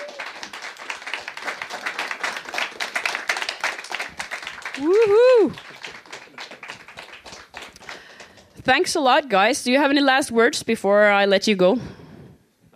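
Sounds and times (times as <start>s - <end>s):
whooping cheer: 0.0s - 0.5s, 4.7s - 5.8s
crowd applauding the bands: 0.0s - 8.6s
speech: 4.8s - 5.7s, 8.7s - 12.0s.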